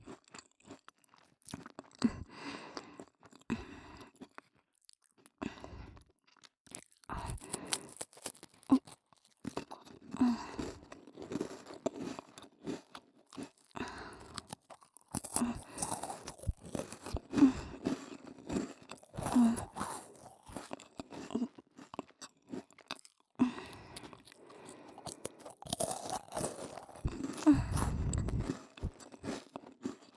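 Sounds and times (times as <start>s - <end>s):
ASMR cookie sounds: 6.8s - 9.0s, 9.7s - 30.1s.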